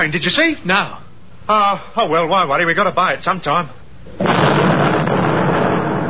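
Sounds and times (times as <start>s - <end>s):
speech: 0.0s - 4.8s
V-1 flying bomb exploding nearby: 4.1s - 6.0s.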